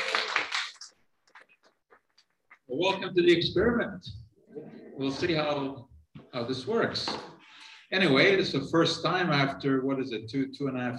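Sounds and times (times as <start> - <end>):
audience applause: 0.0 - 0.9
speech: 2.7 - 7.3, 7.9 - 10.9.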